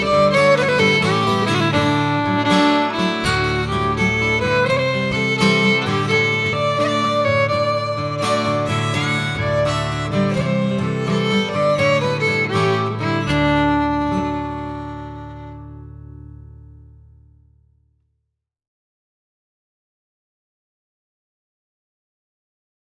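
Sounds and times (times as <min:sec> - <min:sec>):
polka on guitar: 0:00.0 - 0:17.0.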